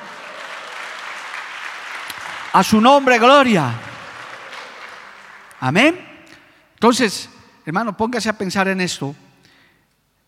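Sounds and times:
audience applauding: 0.0s - 6.1s
speech: 2.5s - 3.9s, 5.6s - 6.1s, 6.8s - 9.2s.

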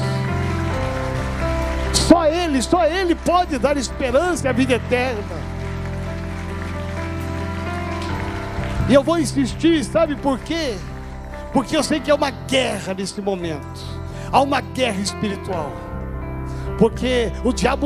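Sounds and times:
audience applauding: 0.0s - 13.1s
speech: 2.3s - 5.5s, 8.9s - 10.9s, 11.6s - 15.8s, 16.8s - 17.8s.

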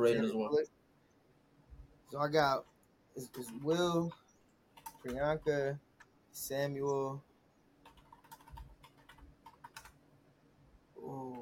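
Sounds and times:
speech: 0.0s - 0.8s, 2.1s - 4.2s, 5.0s - 7.3s
keyboard typing: 2.5s - 6.1s, 7.8s - 10.0s, 11.1s - 11.4s.

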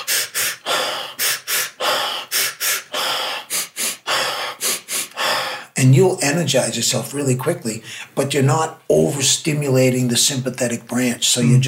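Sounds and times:
sharp inhales from a Sufi breathing technique: 0.0s - 5.8s, 7.8s - 8.2s
sighing exhale from a Sufi breathing technique: 0.0s - 5.8s
speech: 5.8s - 11.6s.

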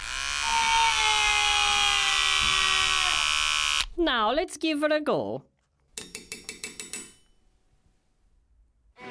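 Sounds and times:
electric clippers buzzing: 0.0s - 4.0s
speech: 4.0s - 5.5s.

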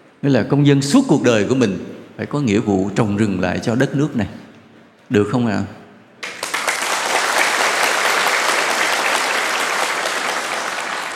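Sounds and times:
speech: 0.2s - 4.4s, 5.1s - 5.8s
audience applause at a Buddhist dharma talk: 6.2s - 11.1s.

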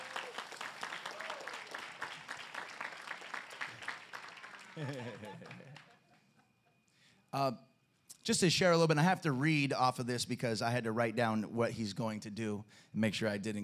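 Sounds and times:
audience applause: 0.0s - 5.9s
laughter: 4.6s - 6.8s
speech: 4.8s - 5.9s, 7.3s - 13.6s.

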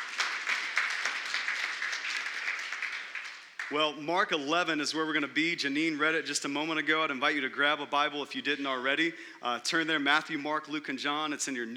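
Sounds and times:
audience applause: 0.0s - 3.8s
speech: 3.7s - 11.7s.

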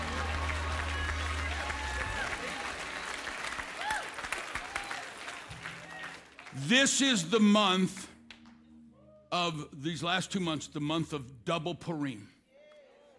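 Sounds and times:
audience clapping: 0.0s - 8.6s
speech: 6.6s - 8.0s, 9.4s - 12.3s.

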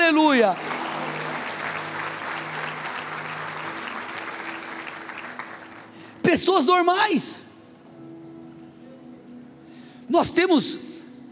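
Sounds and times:
audience applause: 0.0s - 6.1s
speech: 0.3s - 0.7s, 6.3s - 7.4s, 10.1s - 10.8s.

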